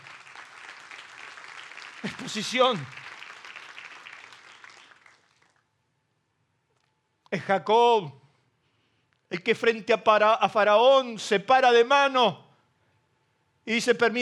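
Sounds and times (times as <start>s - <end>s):
audience applauding: 0.0s - 5.6s
speech: 2.0s - 3.0s, 7.3s - 8.2s, 9.3s - 12.4s, 13.6s - 14.2s.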